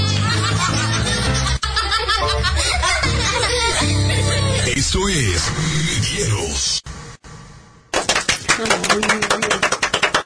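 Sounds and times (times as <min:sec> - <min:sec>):
laughter: 0:00.0 - 0:04.8
speech: 0:05.0 - 0:06.8, 0:08.6 - 0:09.3
applause: 0:07.9 - 0:10.2.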